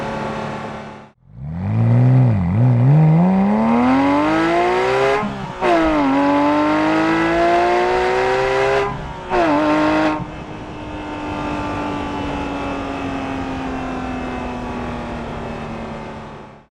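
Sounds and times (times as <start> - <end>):
Porsche 911 GT3: 0.0 - 16.6.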